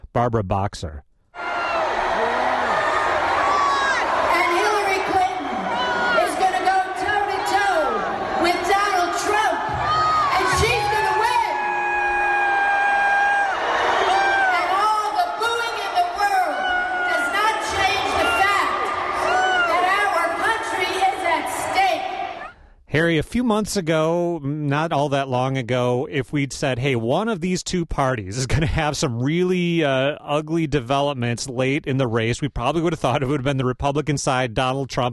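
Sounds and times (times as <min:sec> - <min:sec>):
speech: 0:00.2 - 0:01.1, 0:23.0 - 0:35.1
scattered shouts and whoops: 0:01.4 - 0:08.7, 0:09.4 - 0:15.4, 0:16.1 - 0:20.3
large crowd booing during a speech: 0:01.4 - 0:22.6.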